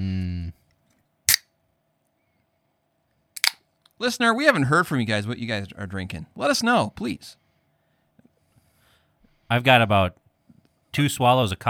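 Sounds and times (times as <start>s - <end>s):
person humming: 0.0s - 0.6s
sparkling water can cracking open with pop and hiss: 1.3s - 1.5s, 3.4s - 3.6s
speech: 4.0s - 7.4s, 9.5s - 10.2s, 10.9s - 11.6s.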